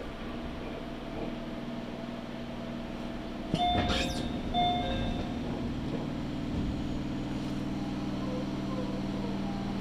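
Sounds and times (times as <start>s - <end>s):
low rumble and hum on a Tokaido Line train platform: 0.2s - 9.6s
sharp clank: 3.5s - 4.4s
brief tones: 3.6s - 5.4s.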